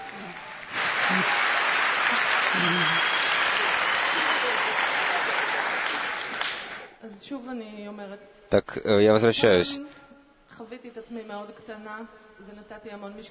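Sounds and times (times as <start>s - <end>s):
audience applause: 0.0s - 6.9s
speech: 7.3s - 10.0s, 10.6s - 13.3s.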